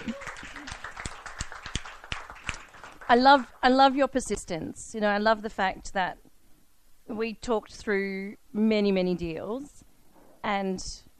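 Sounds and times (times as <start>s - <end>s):
small audience round of applause: 0.0s - 3.6s
speech: 3.1s - 6.2s, 7.1s - 9.8s, 10.4s - 11.1s.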